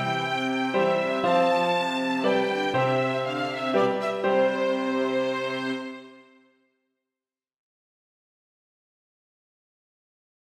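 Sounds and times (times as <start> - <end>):
early eighteenth-century minuet for violin, cello and piano: 0.0 - 6.4.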